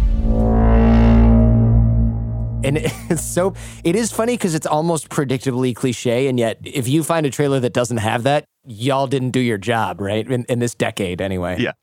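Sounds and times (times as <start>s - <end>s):
movie trailer foghorn-like braam hit: 0.0s - 4.5s
drum beats: 2.6s - 4.8s
speech: 2.7s - 11.8s.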